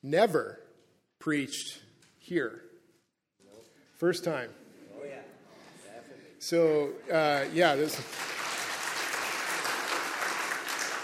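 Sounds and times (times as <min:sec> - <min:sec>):
speech: 0:00.0 - 0:00.6, 0:01.2 - 0:02.7, 0:04.0 - 0:04.6, 0:06.4 - 0:08.4
audience applause: 0:07.2 - 0:11.0.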